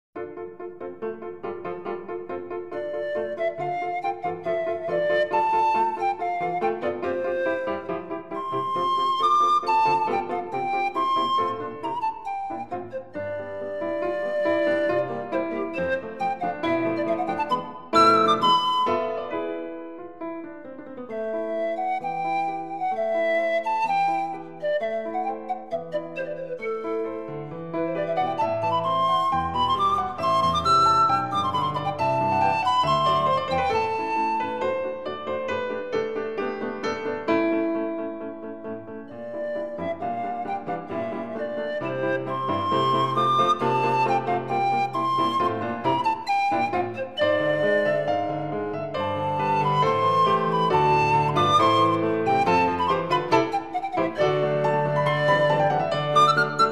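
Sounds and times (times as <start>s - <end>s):
pan flute music, sonatina allegro moderato: 0.9s - 56.7s.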